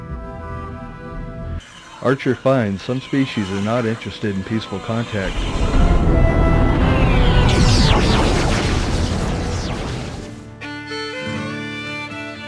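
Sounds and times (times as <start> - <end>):
speech: 2.0 - 5.8
tonal sounds: 5.1 - 10.6
chemically propelled missiles fired in space: 5.3 - 10.6.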